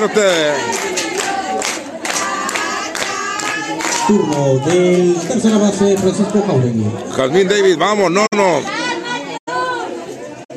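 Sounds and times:
speech: 0:00.0 - 0:01.0, 0:03.7 - 0:08.8
stadium crowd applause: 0:00.0 - 0:06.6.

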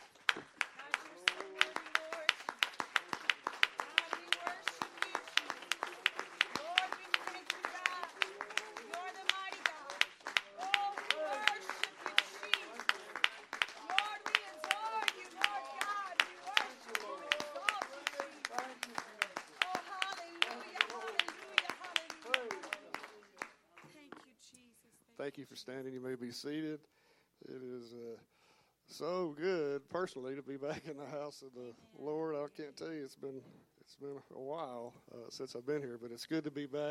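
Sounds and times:
audience clapping: 0:00.0 - 0:24.4
voices calling out and cheering: 0:00.6 - 0:23.5
speech: 0:25.4 - 0:26.9, 0:27.8 - 0:28.3, 0:29.0 - 0:36.8.

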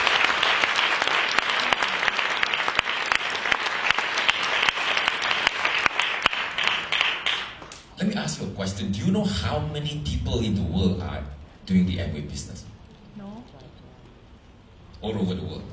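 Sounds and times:
audience applause: 0:00.0 - 0:07.7
speech: 0:08.3 - 0:12.7, 0:15.0 - 0:15.7.

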